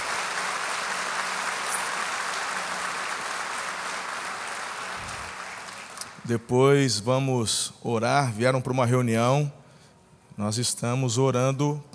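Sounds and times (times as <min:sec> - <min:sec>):
audience applauding: 0:00.0 - 0:06.3
speech: 0:06.2 - 0:09.6, 0:10.4 - 0:11.9.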